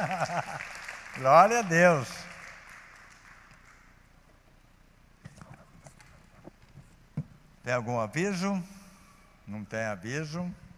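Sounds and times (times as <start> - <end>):
laughter: 0.0 - 0.7
speech: 0.0 - 2.2, 7.7 - 8.8, 9.5 - 10.6
audience applause: 0.0 - 3.8.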